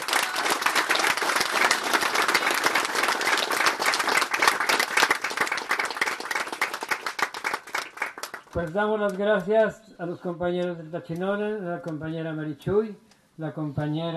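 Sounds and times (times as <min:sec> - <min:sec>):
crowd applauding: 0:00.0 - 0:08.8
speech: 0:08.6 - 0:14.1.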